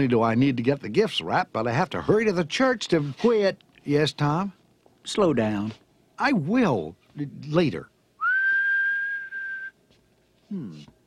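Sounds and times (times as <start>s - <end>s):
speech: 0.0s - 7.9s, 10.5s - 10.9s
person whistling to find keys: 8.2s - 9.8s.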